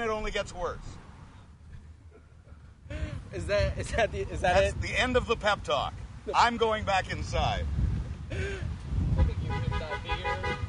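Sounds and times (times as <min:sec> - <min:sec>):
traffic rumble: 0:00.0 - 0:10.6
speech: 0:00.2 - 0:01.0, 0:02.9 - 0:08.5
car horns honking: 0:09.1 - 0:10.6.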